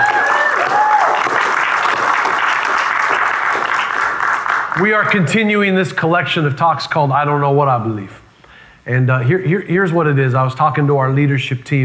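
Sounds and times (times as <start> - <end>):
church congregation applauding in praise: 0.0 - 5.3
speech: 4.8 - 8.2, 8.8 - 11.8.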